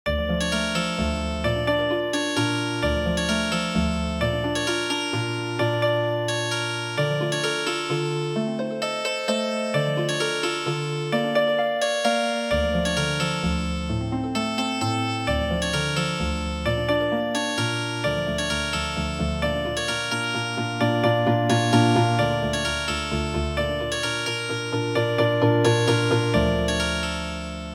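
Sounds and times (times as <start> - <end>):
healing harp music: 0.2 - 27.7.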